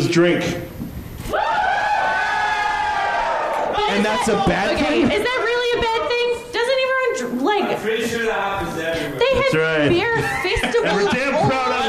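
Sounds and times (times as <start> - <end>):
speech: 0.2 - 0.7, 3.9 - 6.2, 7.5 - 11.8
live audience cheering and screaming: 1.3 - 5.0
laughter: 9.9 - 11.8.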